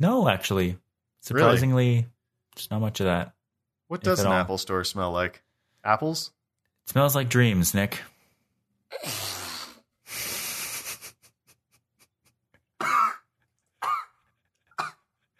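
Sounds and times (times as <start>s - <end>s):
speech: 0.0s - 8.1s, 8.9s - 9.2s
person choking on a sip of water: 8.9s - 9.8s, 12.8s - 14.1s
short rough coughs: 12.8s - 14.2s, 14.8s - 15.1s.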